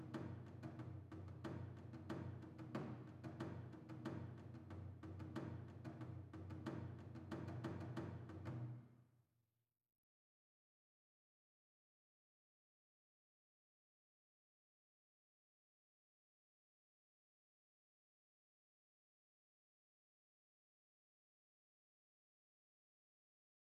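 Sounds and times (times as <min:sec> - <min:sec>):
odaiko drum: 0:00.0 - 0:08.8.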